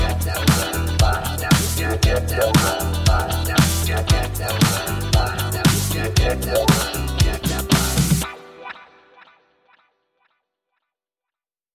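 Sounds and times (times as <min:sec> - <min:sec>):
funk music: 0:00.0 - 0:09.0.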